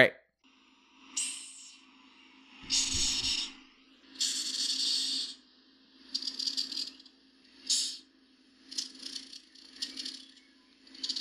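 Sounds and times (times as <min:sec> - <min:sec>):
hissing cockroach hissing: 0:01.2 - 0:01.9, 0:02.6 - 0:05.4, 0:06.0 - 0:11.1.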